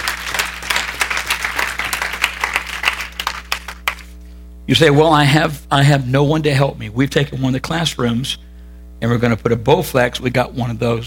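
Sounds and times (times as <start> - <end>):
audience hand clap of praise: 0.0 - 4.2
speech: 4.7 - 8.4, 9.0 - 11.0.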